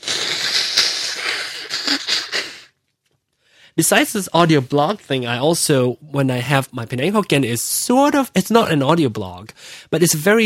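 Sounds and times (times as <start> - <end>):
nose blowing: 0.0 - 2.8
speech: 3.8 - 10.4.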